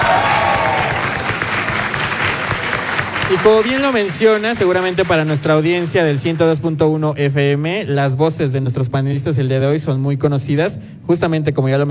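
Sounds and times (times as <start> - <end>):
audience applause: 0.0 - 6.6
speech: 3.3 - 11.8.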